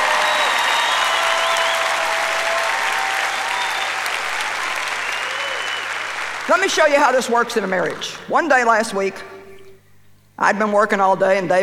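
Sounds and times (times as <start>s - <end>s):
audience clapping: 0.0s - 8.2s
speech: 6.5s - 9.3s, 10.4s - 11.6s.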